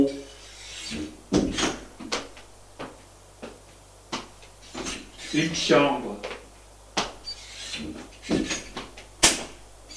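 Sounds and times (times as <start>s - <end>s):
door being opened: 0.6s - 1.9s, 7.2s - 9.9s
speech: 5.3s - 6.1s.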